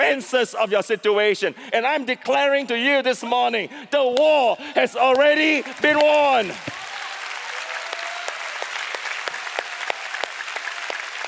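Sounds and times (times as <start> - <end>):
speech: 0.1 - 6.8
church audience applause: 5.1 - 11.2.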